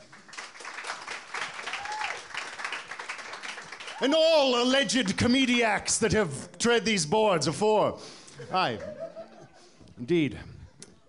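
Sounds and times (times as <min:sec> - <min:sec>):
audience applause: 0:00.0 - 0:05.3
speech: 0:04.0 - 0:09.0, 0:10.0 - 0:10.5
laughter: 0:08.3 - 0:11.0.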